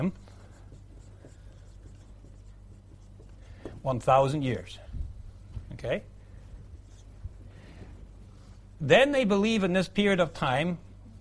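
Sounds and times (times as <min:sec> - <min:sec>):
speech: 0:00.0 - 0:00.2, 0:03.8 - 0:04.8, 0:05.7 - 0:06.1, 0:08.8 - 0:10.8
diagram drawn by hand: 0:00.0 - 0:03.6
low steady hum: 0:00.0 - 0:11.1.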